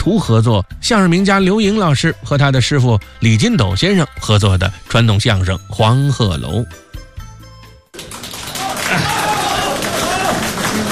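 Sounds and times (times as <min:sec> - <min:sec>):
speech: 0:00.0 - 0:06.8
audience applause: 0:08.0 - 0:10.9.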